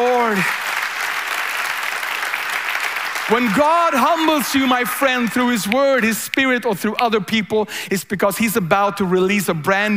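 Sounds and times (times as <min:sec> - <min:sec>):
audience applauding: 0:00.0 - 0:06.2
speech: 0:03.3 - 0:09.9.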